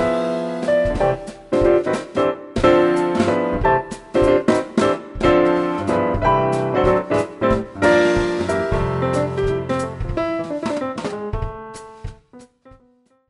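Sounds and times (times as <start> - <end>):
music without bass: 0.0 - 13.2.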